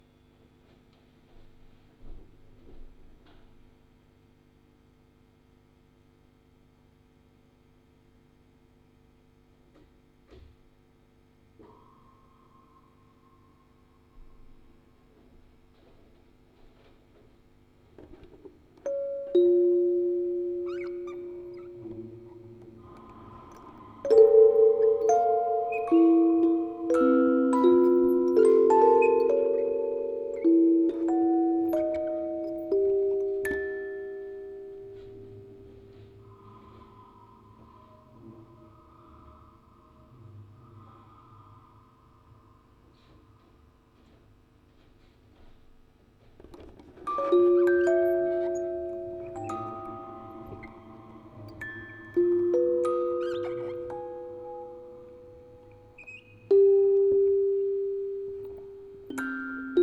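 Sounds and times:
quartet of music boxes playing: 0:18.8 - 0:37.1, 0:47.1 - 0:59.8.

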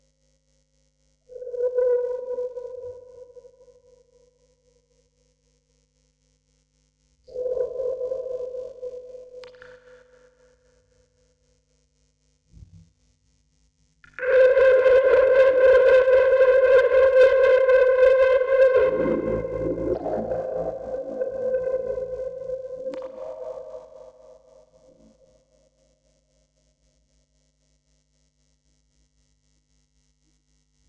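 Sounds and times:
vocoder: 0:14.1 - 0:24.2.

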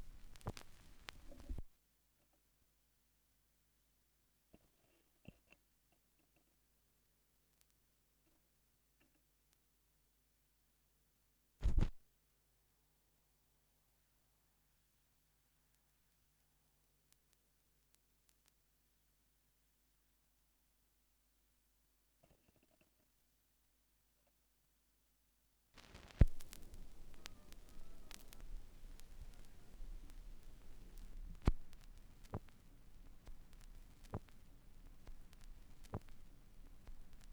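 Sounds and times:
vinyl record noise: 0:00.0 - 0:01.7, 0:11.6 - 0:12.0, 0:25.8 - 0:37.3.

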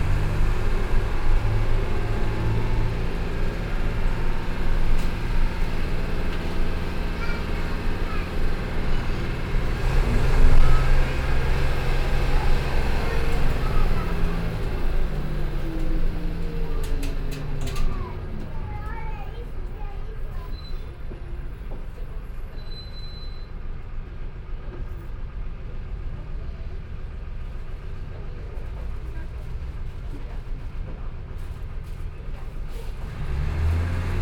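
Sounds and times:
bus interior ambience in Brazil: 0:00.0 - 0:34.1.

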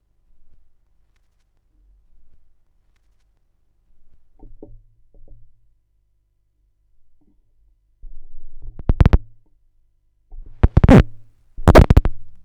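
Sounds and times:
vinyl record noise: 0:08.9 - 0:09.2, 0:10.6 - 0:12.3.

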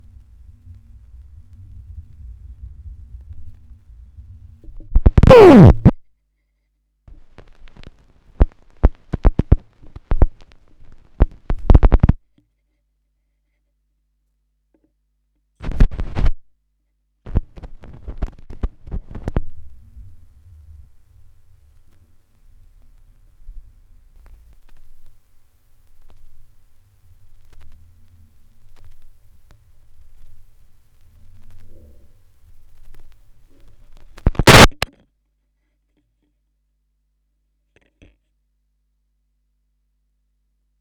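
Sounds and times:
vinyl record noise: 0:04.9 - 0:05.9, 0:07.4 - 0:12.2, 0:17.3 - 0:34.9.

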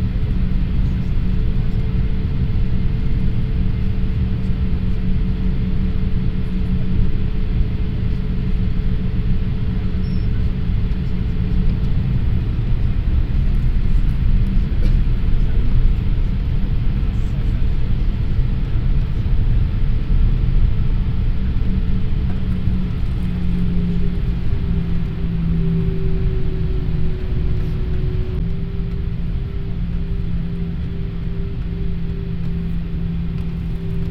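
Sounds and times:
flight in Brazil: 0:00.0 - 0:34.0.

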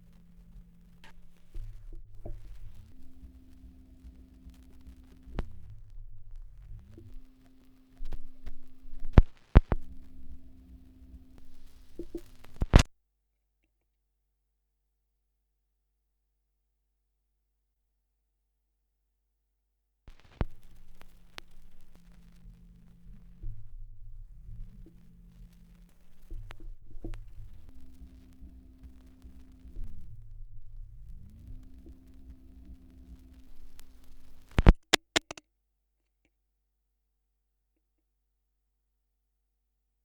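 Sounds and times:
78rpm gramophone record surface noise: 0:00.0 - 0:12.9, 0:20.1 - 0:35.4.

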